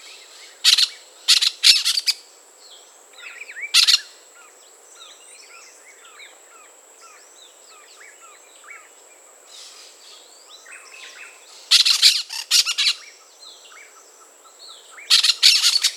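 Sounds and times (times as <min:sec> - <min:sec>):
brown-throated parakeet calling: 0:00.6 - 0:02.2, 0:03.7 - 0:04.1, 0:11.7 - 0:13.1, 0:15.1 - 0:15.9.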